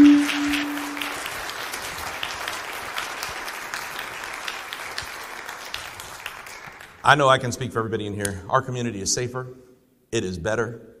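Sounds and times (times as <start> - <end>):
audience applauding: 0.0 - 7.3
speech: 7.1 - 10.9.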